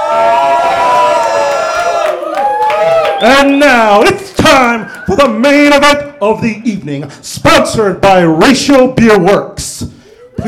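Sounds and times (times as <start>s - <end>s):
live audience at the Mutiny Info Cafe cheering: 0.0s - 5.7s
speech: 3.2s - 10.4s.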